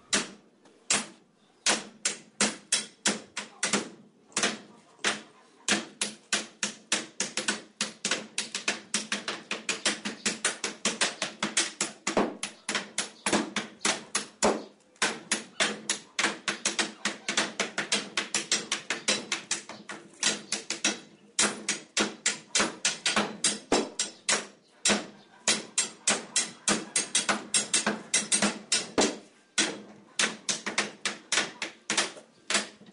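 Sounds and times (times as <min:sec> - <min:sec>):
metal and wooden hammers striking barrel hoop: 0:00.1 - 0:32.8.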